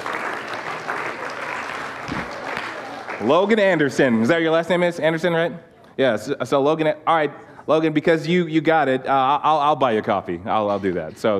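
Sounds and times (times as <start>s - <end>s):
audience applause: 0.0s - 3.7s
speech: 3.2s - 11.3s.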